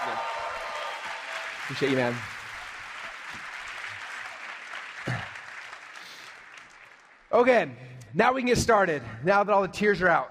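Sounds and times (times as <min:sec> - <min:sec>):
audience applause: 0:00.0 - 0:07.3
speech: 0:01.7 - 0:02.3, 0:07.4 - 0:10.2.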